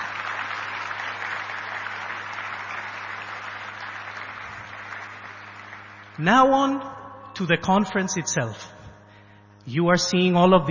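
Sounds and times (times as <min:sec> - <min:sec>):
audience applause: 0:00.0 - 0:06.2
speech: 0:06.2 - 0:08.8, 0:09.6 - 0:10.6.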